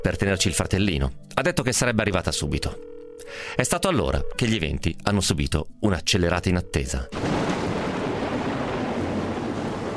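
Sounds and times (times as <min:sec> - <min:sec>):
speech: 0:00.0 - 0:07.4
heavy rainstorm: 0:07.1 - 0:09.9.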